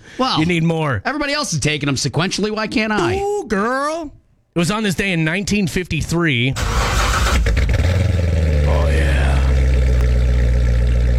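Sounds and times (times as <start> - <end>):
speech: 0.2 - 6.8
Corvette sports car engine cranking and rumbling: 6.6 - 11.1.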